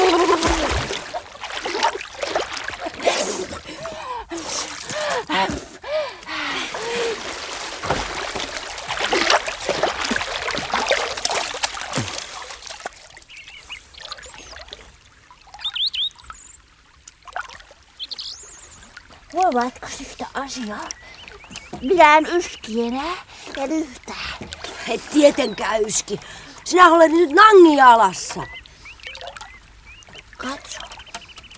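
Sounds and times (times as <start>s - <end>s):
water splashing from swimming and diving: 0.0s - 31.5s
speech: 19.5s - 21.0s, 21.8s - 24.0s, 24.9s - 28.6s.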